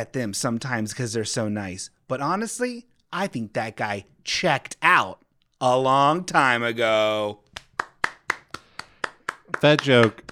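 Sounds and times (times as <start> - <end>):
speech: 0.0 - 7.4, 9.6 - 10.3
person clapping for themselves: 7.5 - 10.3.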